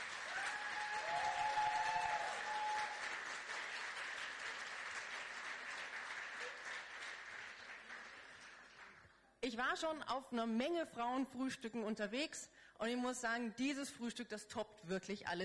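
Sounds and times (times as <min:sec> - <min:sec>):
crowd clapping: 0:00.0 - 0:09.2
speech: 0:09.5 - 0:15.4.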